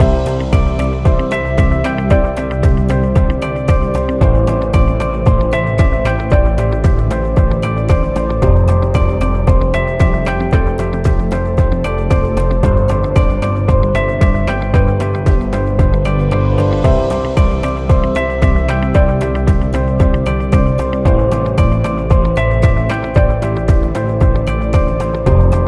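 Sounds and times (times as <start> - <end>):
corporate podcast music loop: 0.0 - 25.6.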